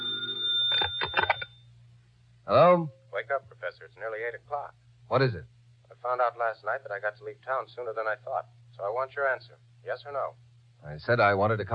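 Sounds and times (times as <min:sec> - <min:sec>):
telephone ringing: 0:00.0 - 0:01.6
speech: 0:02.5 - 0:11.7.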